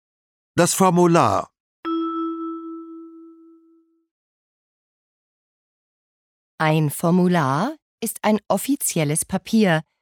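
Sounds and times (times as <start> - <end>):
speech: 0.6 - 1.5, 6.6 - 9.9
signal tone prompting repetition: 1.9 - 4.0.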